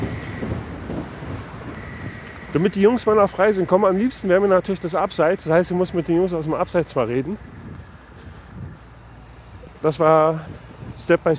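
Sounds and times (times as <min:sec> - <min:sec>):
S-Bahn train rushing past: 0:00.0 - 0:05.4
speech: 0:02.5 - 0:07.6, 0:09.8 - 0:11.3.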